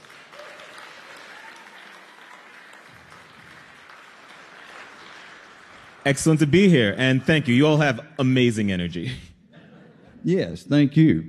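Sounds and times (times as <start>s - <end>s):
audience clapping to welcome a guest author: 0.0s - 7.5s
speech: 6.0s - 9.3s, 10.2s - 11.2s
laughter: 9.0s - 10.4s.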